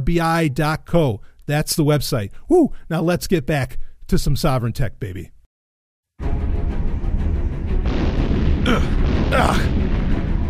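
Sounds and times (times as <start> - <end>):
speech: 0.0 - 5.4
Noxy V7 missile strikes exploding in a sci-fi audio drama: 6.9 - 10.4.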